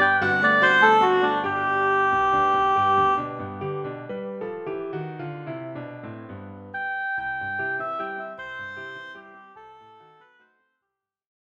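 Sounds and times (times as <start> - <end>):
oboe: 0.0 - 4.4, 6.8 - 10.6.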